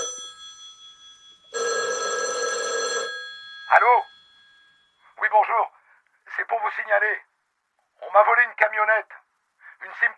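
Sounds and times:
telephone ringing as a call is placed to a police station: 0.0 - 5.2
speech: 3.7 - 4.1, 6.9 - 7.3, 8.1 - 9.2, 9.9 - 10.1.

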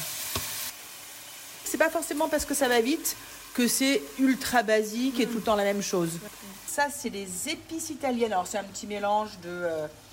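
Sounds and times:
chicken sizzling in olive oil: 0.0 - 10.1
speech: 1.8 - 10.0.

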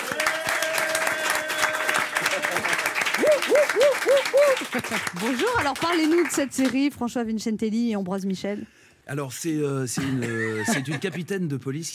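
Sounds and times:
audience applause: 0.0 - 6.8
speech: 3.7 - 11.9.

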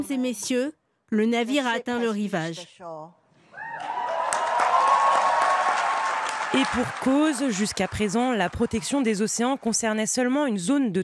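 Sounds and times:
speech: 0.0 - 3.2, 6.5 - 11.0
applause and cheering at the UN after the ocean treaty agreement: 3.6 - 9.7.

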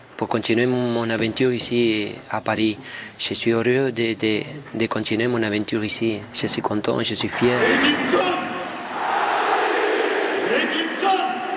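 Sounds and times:
speech: 0.2 - 8.4
stadium crowd in Paris cheering and applauding the footballer Cavani: 7.3 - 11.5.

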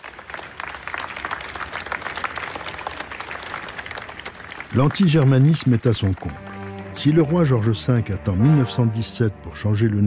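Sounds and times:
crowd applauding enthusiastically: 0.0 - 8.6
speech: 4.7 - 6.4, 7.0 - 10.0.

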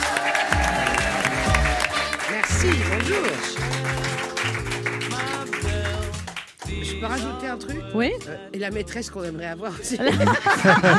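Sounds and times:
audience applause: 0.0 - 6.7
speech: 2.6 - 4.1, 7.0 - 10.9
laughter: 9.9 - 10.9.

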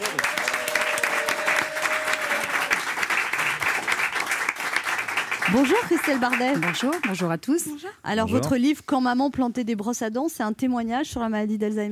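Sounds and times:
audience applause: 0.0 - 7.3
speech: 5.5 - 11.9.

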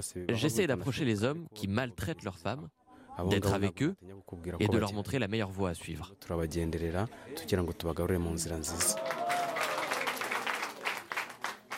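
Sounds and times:
speech: 0.0 - 9.4
audience applause: 8.6 - 11.7.

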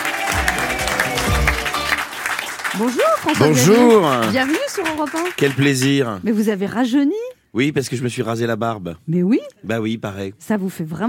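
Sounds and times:
audience applauding to welcome a guest actor: 0.0 - 6.1
speech: 2.8 - 11.0.

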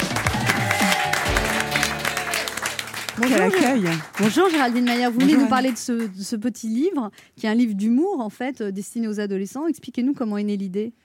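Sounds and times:
studio audience applause: 0.0 - 6.1
speech: 3.2 - 11.0.

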